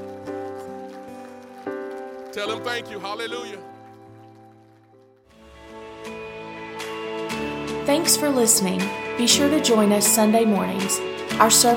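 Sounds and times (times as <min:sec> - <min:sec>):
audience clapping in praise: 0:00.0 - 0:05.7
speech: 0:02.3 - 0:03.7, 0:07.9 - 0:11.7.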